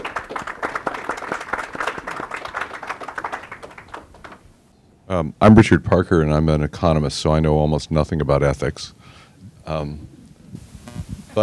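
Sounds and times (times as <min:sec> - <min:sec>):
crowd clapping: 0:00.0 - 0:04.6
speech: 0:05.1 - 0:09.0, 0:09.7 - 0:10.2.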